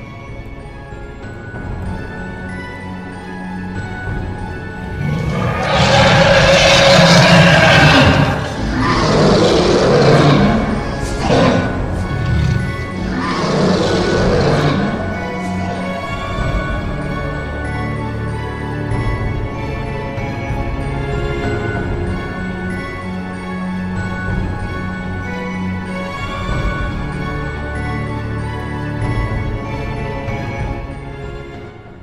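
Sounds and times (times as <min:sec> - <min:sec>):
humming musical backdrop: 0:00.0 - 0:32.0
phantom white tiger roaring: 0:04.9 - 0:16.4.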